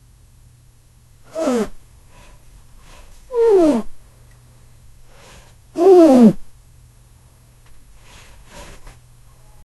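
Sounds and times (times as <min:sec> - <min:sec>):
domestic animal sound: 0:01.2 - 0:01.8, 0:03.3 - 0:03.9.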